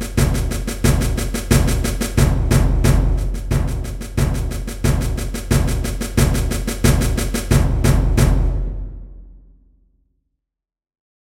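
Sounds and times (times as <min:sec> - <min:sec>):
drum corps playing: 0:00.0 - 0:09.0.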